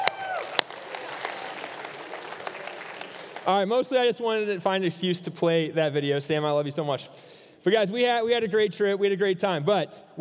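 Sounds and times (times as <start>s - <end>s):
audience clapping: 0.0s - 3.7s
speech: 3.4s - 10.1s.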